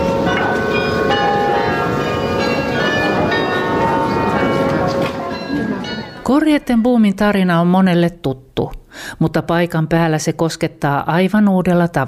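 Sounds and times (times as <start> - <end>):
Grote Kerk church bells ringing: 0.0 - 7.1
speech: 6.4 - 12.0.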